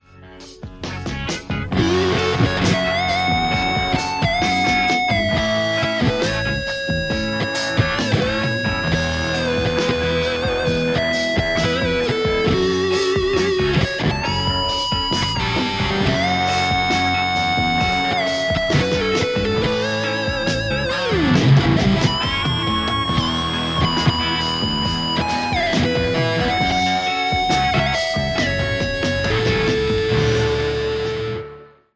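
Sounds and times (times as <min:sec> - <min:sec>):
Les Paul electric guitar: 0:00.0 - 0:31.9.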